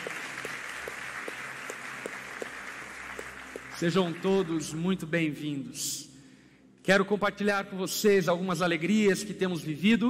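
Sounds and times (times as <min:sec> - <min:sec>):
church congregation applauding: 0:00.0 - 0:04.8
speech: 0:03.8 - 0:06.1, 0:06.9 - 0:10.0.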